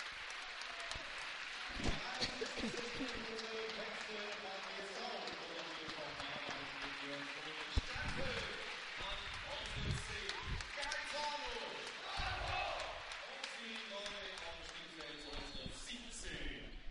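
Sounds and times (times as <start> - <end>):
stadium applause: 0.0 - 16.7
laughter: 1.6 - 6.6.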